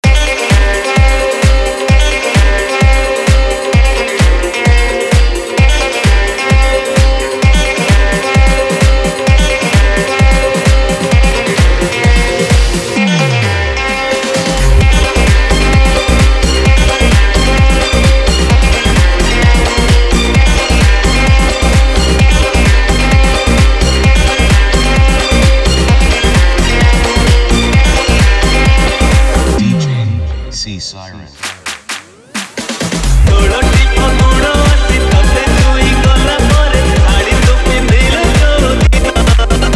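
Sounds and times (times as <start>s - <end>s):
remix music: 0.0s - 39.7s.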